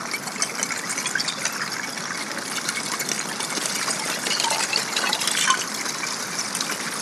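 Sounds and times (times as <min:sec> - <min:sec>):
icy stream flowing on a glacier: 0:00.0 - 0:07.0.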